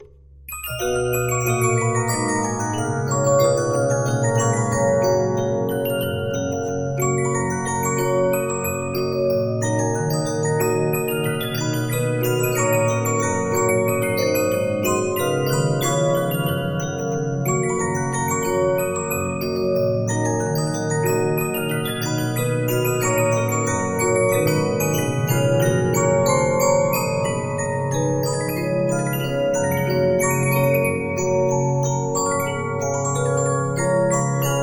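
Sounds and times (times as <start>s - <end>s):
Regina 15-inch disc music box: 0.0s - 34.6s.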